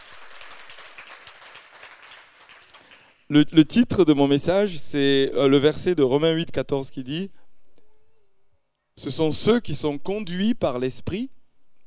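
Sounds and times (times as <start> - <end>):
church congregation applauding: 0.0 - 3.3
speech: 3.3 - 7.4, 9.0 - 11.4.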